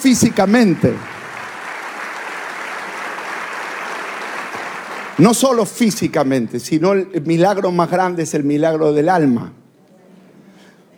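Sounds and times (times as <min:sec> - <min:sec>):
speech: 0:00.0 - 0:01.1, 0:05.2 - 0:09.6
audience applause: 0:00.0 - 0:05.5.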